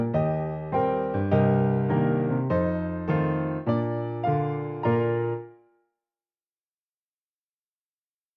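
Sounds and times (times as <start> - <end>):
jazz piano part for alto saxophone studies: 0.0 - 5.6.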